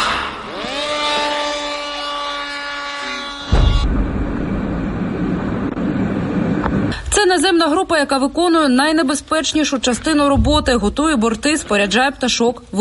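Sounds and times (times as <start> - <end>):
attack drone engine buzzing whine: 0.0 - 2.2, 2.8 - 6.9
speech: 7.4 - 12.8.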